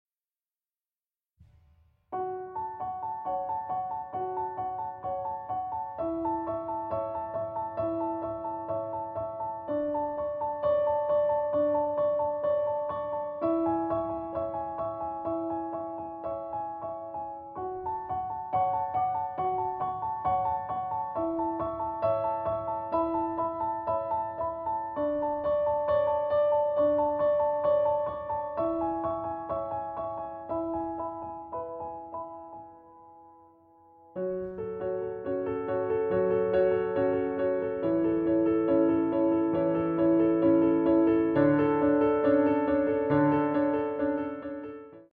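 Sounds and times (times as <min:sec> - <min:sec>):
solo piano: 0:01.4 - 0:45.1.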